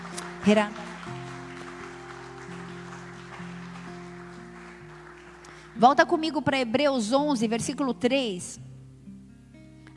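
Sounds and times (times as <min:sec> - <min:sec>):
audience applauding: 0:00.0 - 0:06.1
speech: 0:00.4 - 0:00.8, 0:05.8 - 0:08.7.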